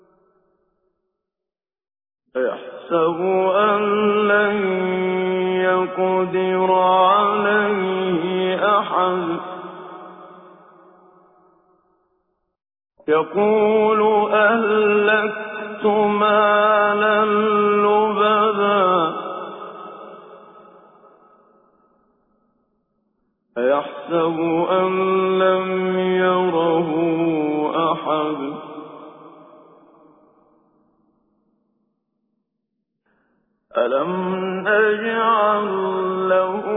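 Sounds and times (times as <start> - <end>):
person reciting Quran with tajweed: 2.4 - 10.2, 13.0 - 20.6, 23.6 - 29.1, 33.7 - 36.7.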